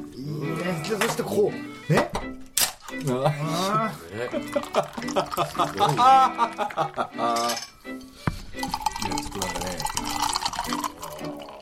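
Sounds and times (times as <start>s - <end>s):
speech: 0.2s - 2.1s, 3.0s - 7.7s
laughter: 3.0s - 7.5s
energy drink poured into a glass: 4.4s - 6.0s, 8.5s - 11.6s
sharp clink: 7.4s - 7.8s, 8.6s - 11.6s.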